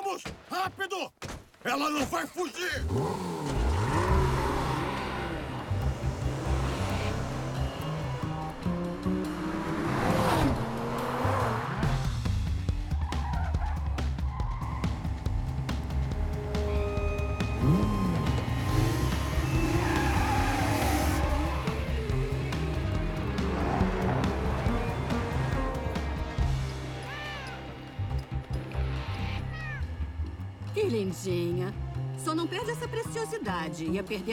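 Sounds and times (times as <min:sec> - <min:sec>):
speech: 0:00.2 - 0:03.4, 0:31.2 - 0:31.8, 0:32.4 - 0:34.3
car engines revving as vehicles accelerate away: 0:02.8 - 0:34.3
tire squeal: 0:03.4 - 0:11.9, 0:12.9 - 0:15.4, 0:16.3 - 0:27.7.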